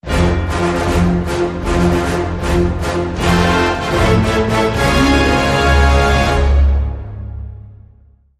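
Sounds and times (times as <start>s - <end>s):
triumphant hero music: 0.0s - 7.8s.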